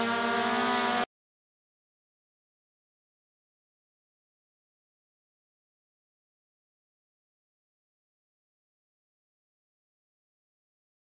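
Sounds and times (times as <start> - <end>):
quadcopter: 0.0 - 1.1.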